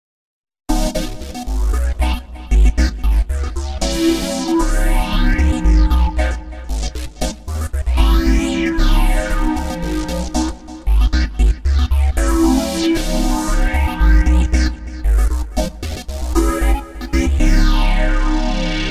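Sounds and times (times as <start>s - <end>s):
synth: 0.8s - 18.8s.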